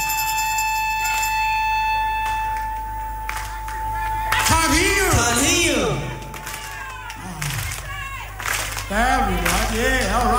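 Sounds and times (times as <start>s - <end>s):
steady electrical hum: 0.0s - 10.3s
scattered hand claps: 2.2s - 4.5s, 6.2s - 10.3s
speech: 8.9s - 10.3s.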